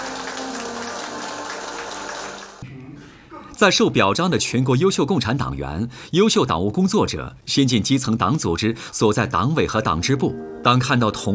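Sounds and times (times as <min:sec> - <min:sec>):
crowd applauding warmly: 0:00.0 - 0:02.6
speech: 0:03.6 - 0:11.3.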